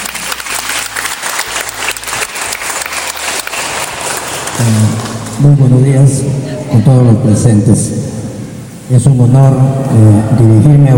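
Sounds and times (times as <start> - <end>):
audience applause: 0.0 - 5.4
speech: 4.6 - 8.0, 8.9 - 10.9.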